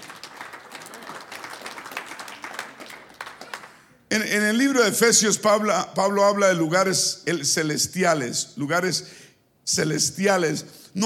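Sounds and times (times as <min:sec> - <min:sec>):
audience applause: 0:00.0 - 0:04.0
speech: 0:04.2 - 0:11.0.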